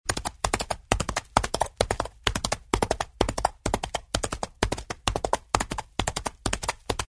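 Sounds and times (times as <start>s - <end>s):
horse galloping on dirt: 0.1s - 7.1s.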